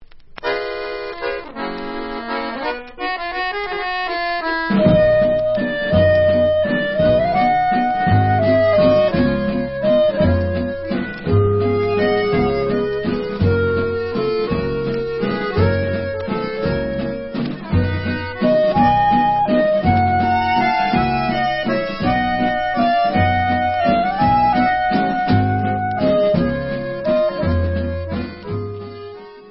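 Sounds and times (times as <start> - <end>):
instrumental music: 0.1 - 29.5.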